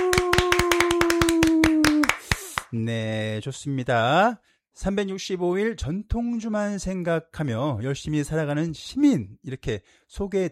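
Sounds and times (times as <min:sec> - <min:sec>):
small group clapping on count of three: 0:00.0 - 0:02.7
speech: 0:02.7 - 0:10.4.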